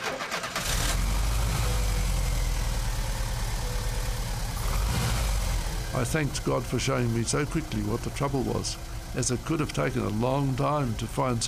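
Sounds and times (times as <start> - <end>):
car engine starting and idling: 0.0 - 11.4
speech: 6.0 - 11.4.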